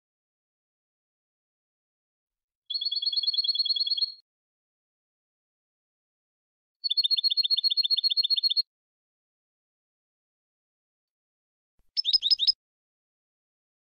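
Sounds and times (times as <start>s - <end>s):
European goldfinch song: 2.7s - 4.2s, 6.8s - 8.7s, 11.9s - 12.6s.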